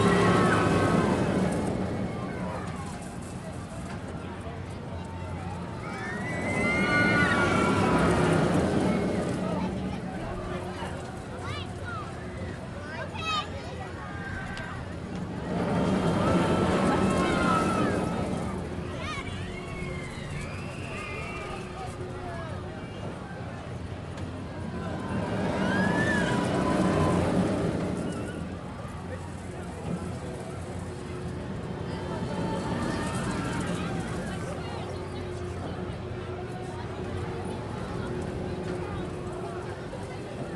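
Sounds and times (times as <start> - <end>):
fair ride swirling and decelerating: 0.0 - 40.5
voices: 0.0 - 40.5.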